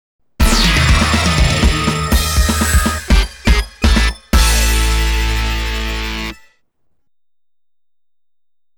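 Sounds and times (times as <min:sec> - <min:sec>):
game over jingle: 0:00.4 - 0:06.4.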